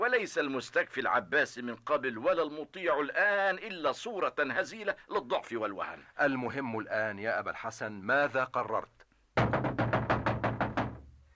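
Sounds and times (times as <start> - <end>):
speech: 0.1 - 9.6
urgent heavy knocking on a door: 9.4 - 11.1.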